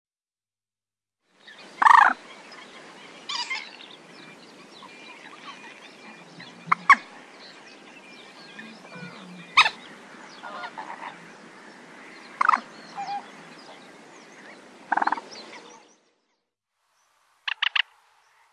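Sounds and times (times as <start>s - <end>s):
common moorhen clucking: 1.8s - 2.2s, 3.3s - 11.5s, 12.1s - 15.8s, 17.5s - 17.9s.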